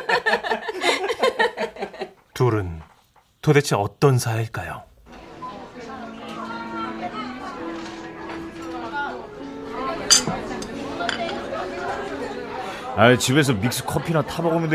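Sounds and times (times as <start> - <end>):
laughter: 0.0 - 2.2
speech: 2.4 - 4.9, 13.0 - 14.7
murmur of many voices in a busy café: 5.1 - 14.7
cups and dishes clinking: 10.0 - 11.8.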